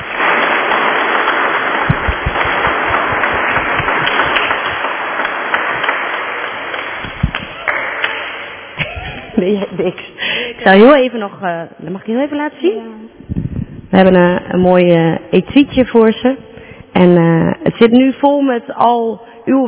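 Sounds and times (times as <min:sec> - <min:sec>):
audience applause: 0:00.0 - 0:09.2
speech: 0:09.4 - 0:13.2, 0:13.9 - 0:19.6.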